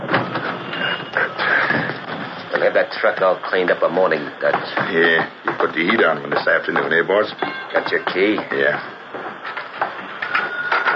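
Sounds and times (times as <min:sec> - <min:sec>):
telephone ringing: 0:00.5 - 0:01.4, 0:05.8 - 0:08.5, 0:10.0 - 0:10.9
speech: 0:02.8 - 0:08.9.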